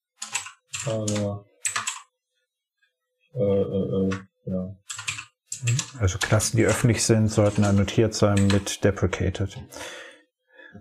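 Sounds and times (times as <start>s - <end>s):
computer keyboard clicking as a code rule is typed: 0.2s - 2.1s, 4.9s - 8.7s
speech: 0.8s - 1.5s, 3.4s - 4.8s, 5.6s - 10.1s.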